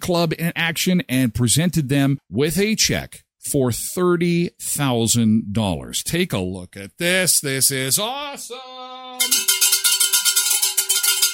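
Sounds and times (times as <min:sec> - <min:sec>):
speech: 0:00.0 - 0:09.5
winners bell ringing: 0:09.2 - 0:11.3.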